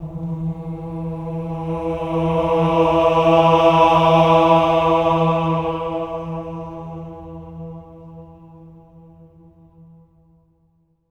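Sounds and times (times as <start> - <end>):
choir voices singing swelling ahs on E3: 0.0 - 7.5.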